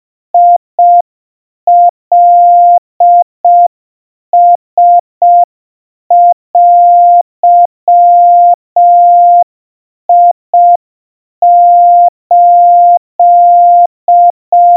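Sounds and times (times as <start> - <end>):
700 Hz Morse code tones: 0.4 - 1.0, 1.7 - 3.7, 4.4 - 5.5, 6.1 - 9.5, 11.4 - 14.7.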